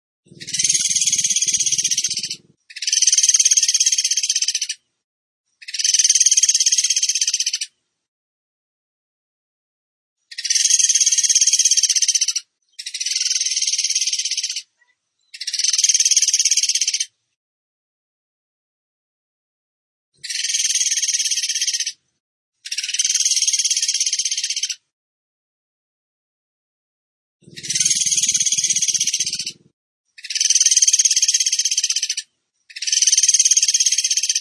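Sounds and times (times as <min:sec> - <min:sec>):
bird trill: 0:00.3 - 0:04.8, 0:05.6 - 0:07.8, 0:10.3 - 0:17.1, 0:20.2 - 0:22.0, 0:22.6 - 0:24.8, 0:27.4 - 0:34.4.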